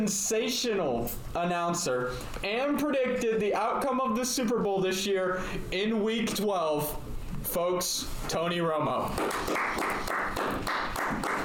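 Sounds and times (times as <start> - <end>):
speech: 0.0 - 10.8
clapping: 9.2 - 11.4.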